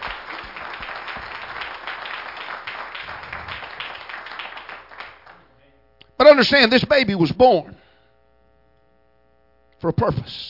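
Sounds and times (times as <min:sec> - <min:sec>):
crowd clapping: 0:00.0 - 0:05.6
speech: 0:06.2 - 0:07.8, 0:09.8 - 0:10.4.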